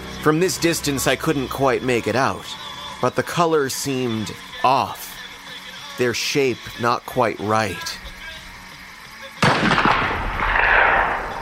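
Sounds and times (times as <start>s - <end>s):
speech: 0.2s - 5.0s, 6.0s - 8.0s
rifle shot echoing off corn stalks: 9.4s - 11.3s.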